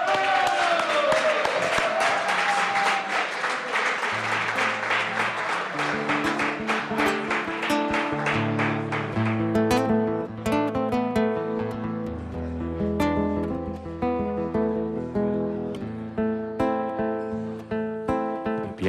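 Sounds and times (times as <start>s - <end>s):
sustained audience applause: 0.0s - 10.0s
music playing under applause: 4.2s - 18.8s.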